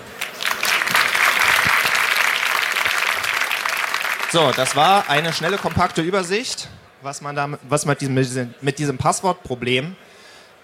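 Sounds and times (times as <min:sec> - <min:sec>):
audience applause: 0:00.0 - 0:06.6
speech: 0:04.3 - 0:10.0.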